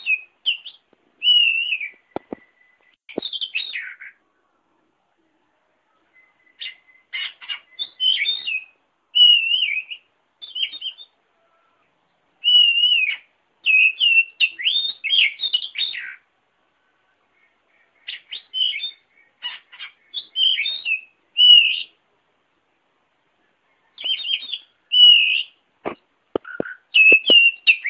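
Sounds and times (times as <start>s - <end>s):
oriental magpie-robin song: 0.0s - 2.6s, 6.2s - 11.2s, 12.4s - 16.2s, 18.1s - 21.9s, 24.0s - 25.6s, 26.4s - 27.8s.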